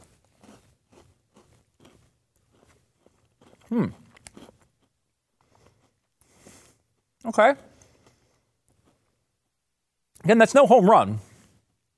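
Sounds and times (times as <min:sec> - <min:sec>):
bite into a chocolate-coated Peanutter cookie with peanut pieces: 0:00.0 - 0:06.4
quieter crunching chews of a Peanutter cookie: 0:00.0 - 0:06.4, 0:07.8 - 0:09.2
speech: 0:03.7 - 0:04.0, 0:07.3 - 0:07.7, 0:10.3 - 0:11.3.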